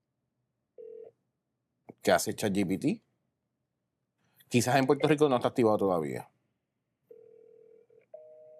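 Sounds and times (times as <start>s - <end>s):
phone ringback tone on a call to an 800 number: 0.8s - 1.1s, 7.1s - 8.5s
speech: 2.0s - 3.0s, 4.5s - 6.3s.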